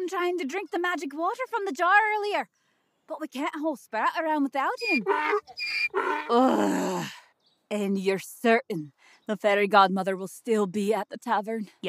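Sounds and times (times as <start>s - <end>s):
speech: 0.1s - 11.8s
donkey braying: 4.7s - 6.7s.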